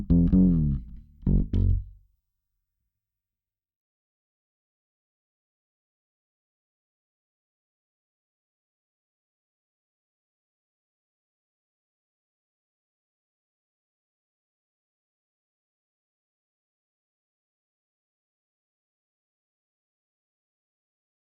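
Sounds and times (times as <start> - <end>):
fretless synth bass: 0.0 - 2.0.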